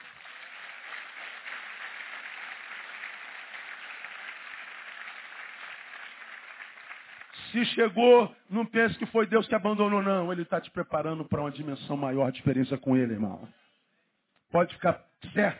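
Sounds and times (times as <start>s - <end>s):
audience applause: 0.0s - 7.4s
speech: 7.5s - 13.6s, 14.5s - 15.5s.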